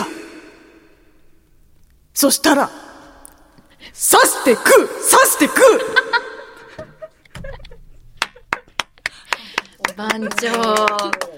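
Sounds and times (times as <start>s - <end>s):
speech: 2.2s - 2.8s, 3.9s - 6.2s, 10.0s - 11.3s
laughter: 5.7s - 8.8s
hand claps on a cooking segment: 8.2s - 11.3s.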